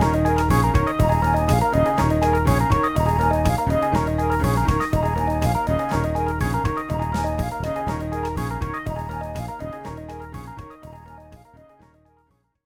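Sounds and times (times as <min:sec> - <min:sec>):
classic blues music: 0:00.0 - 0:11.5.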